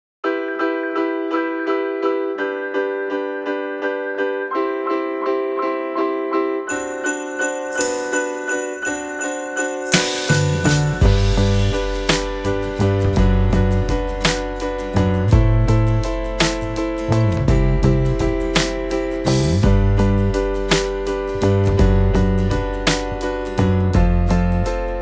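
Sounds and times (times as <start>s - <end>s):
instrumental music: 0.3s - 24.9s.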